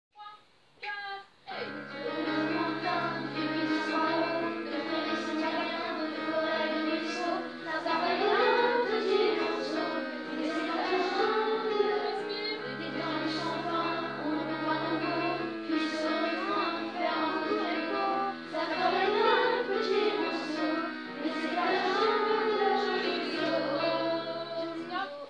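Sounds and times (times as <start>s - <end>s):
person singing in singing rehearsal: 1.5s - 25.2s.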